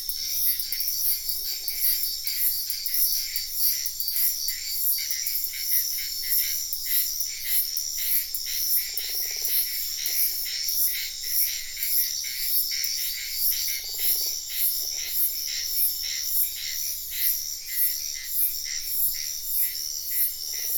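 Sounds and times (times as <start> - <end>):
insects chirping in a wetland at night in Sian Ka'an Biosphere Reserve: 0.0 - 20.7.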